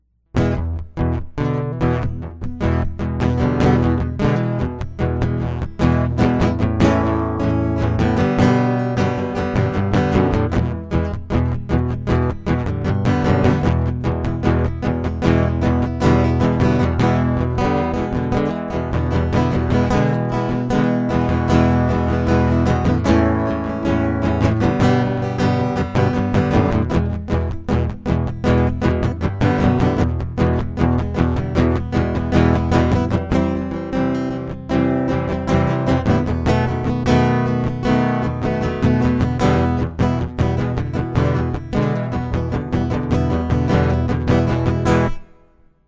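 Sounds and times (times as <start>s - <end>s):
acoustic music: 0.4s - 45.8s.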